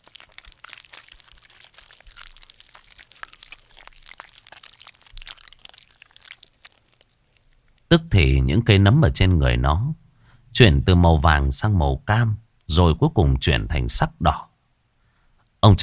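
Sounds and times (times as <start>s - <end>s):
monster's belly mouth crunching and tearing a human corpse: 0.0s - 7.9s
speech: 7.9s - 10.0s, 10.6s - 14.5s, 15.6s - 15.8s.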